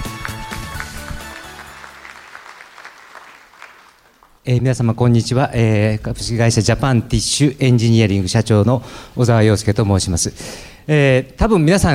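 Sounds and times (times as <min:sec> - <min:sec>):
audience applause welcoming speaker: 0:00.0 - 0:04.4
speech: 0:04.4 - 0:11.9.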